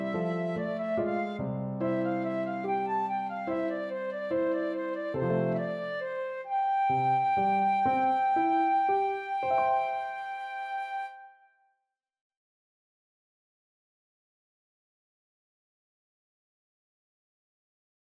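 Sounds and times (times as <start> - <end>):
flute duet: 0.0 - 11.5.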